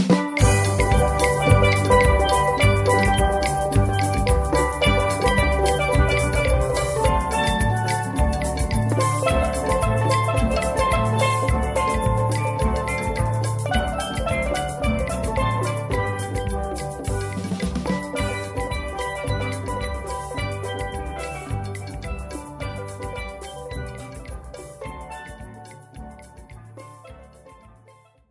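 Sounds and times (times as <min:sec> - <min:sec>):
steel pan: 0:00.1 - 0:28.1.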